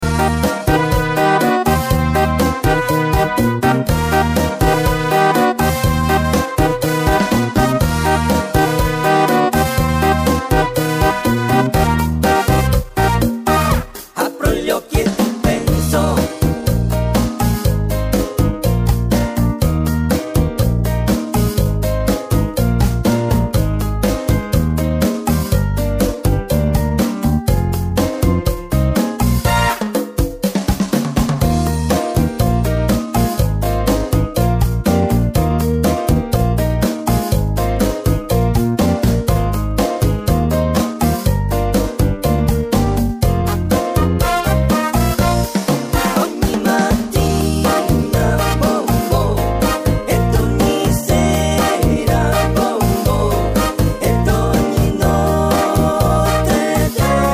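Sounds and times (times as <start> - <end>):
cha cha music: 0.0 - 57.3.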